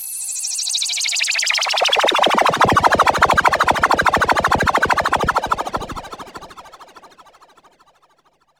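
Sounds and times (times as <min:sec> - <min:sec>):
flyby: 0:01.4 - 0:06.6.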